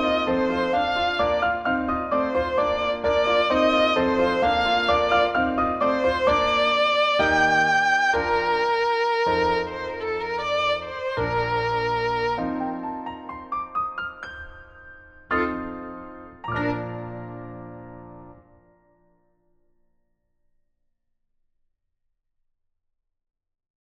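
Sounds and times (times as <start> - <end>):
violin: 0.0 - 14.0, 15.3 - 18.4
piano: 0.0 - 19.8.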